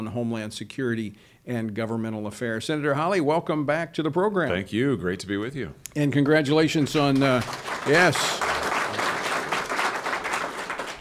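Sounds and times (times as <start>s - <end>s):
speech: 0.0s - 8.5s
recorded applause soundtrack of a clapping crowd: 6.1s - 10.9s.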